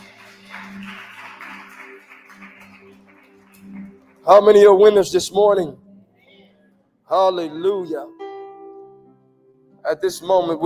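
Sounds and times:
audience hand clapping: 0.0 - 4.8
speech: 4.3 - 5.8, 7.1 - 8.2, 9.8 - 10.6.

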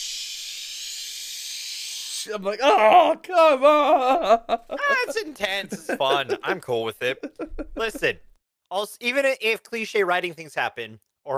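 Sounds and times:
voice imitating the hiss of a sliding door: 0.0 - 2.4
speech: 2.2 - 11.3
laughter: 2.6 - 8.2.

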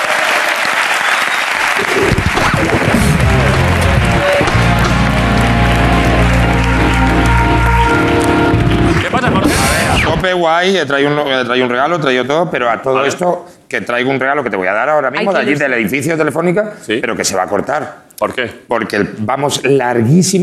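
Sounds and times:
audience applause: 0.0 - 10.1
speech: 10.3 - 20.4.

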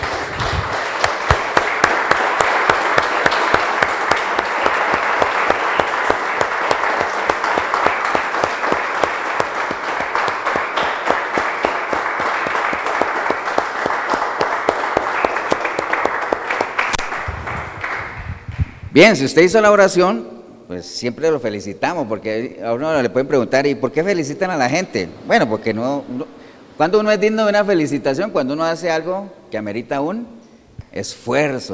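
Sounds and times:
audience applause: 0.0 - 18.3
speech: 19.0 - 31.7.

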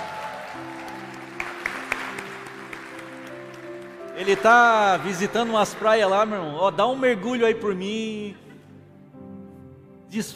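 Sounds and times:
audience applause: 0.0 - 6.8
speech: 4.2 - 8.4, 10.1 - 10.3.

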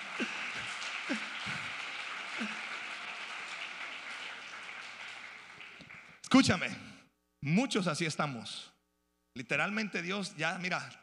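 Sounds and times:
audience applause: 0.0 - 6.2
speech: 6.4 - 8.7, 9.4 - 11.0.

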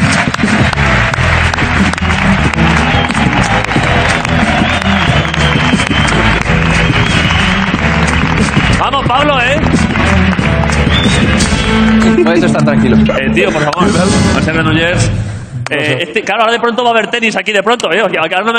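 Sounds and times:
loud sustained applause from a large audience: 0.0 - 13.8
speech: 8.9 - 9.8, 12.2 - 18.5.

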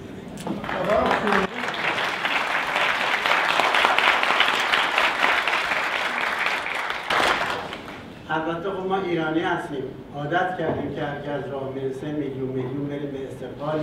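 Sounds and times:
crowd applause: 0.6 - 8.1
speech: 8.4 - 13.8.

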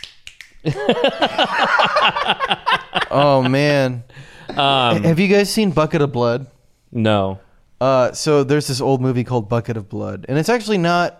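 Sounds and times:
audience finger snapping instead of clapping: 0.0 - 0.7
speech: 0.6 - 11.1
laughter: 0.7 - 5.2.

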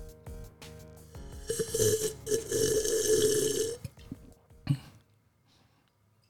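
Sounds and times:
person slurping coffee: 1.5 - 4.2.

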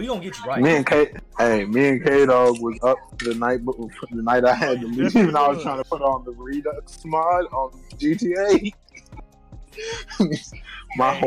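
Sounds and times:
speech: 0.0 - 8.8, 9.8 - 11.2
laughter: 0.0 - 9.2, 9.8 - 11.2
coughing: 0.5 - 6.2, 9.8 - 11.2.

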